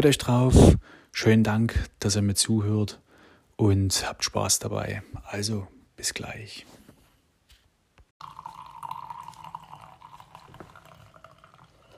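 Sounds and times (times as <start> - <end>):
speech: 0.0 - 3.0, 3.6 - 6.8
coffee pouring into a cup: 8.2 - 11.9.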